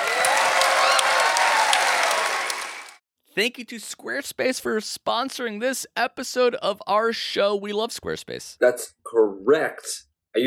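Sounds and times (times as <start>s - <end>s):
audience applause: 0.0s - 3.0s
speech: 3.4s - 10.4s.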